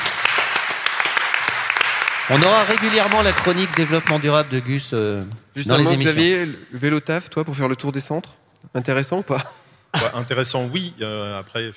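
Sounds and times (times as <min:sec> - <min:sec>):
applause: 0:00.0 - 0:04.9
speech: 0:02.3 - 0:11.7.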